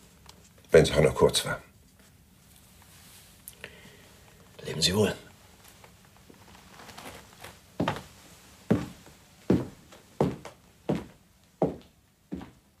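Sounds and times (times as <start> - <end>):
speech: 0.7 - 1.7, 4.8 - 5.2
footsteps walking away down a corridor: 5.6 - 12.6.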